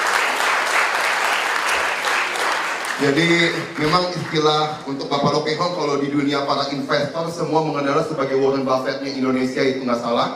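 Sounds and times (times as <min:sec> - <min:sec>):
audience applause: 0:00.0 - 0:04.7
speech: 0:03.0 - 0:10.3.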